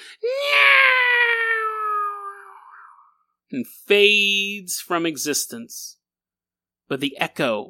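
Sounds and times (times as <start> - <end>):
voice imitating a cat's eerie wail: 0.2 - 3.1
speech: 3.5 - 6.0, 6.9 - 7.6.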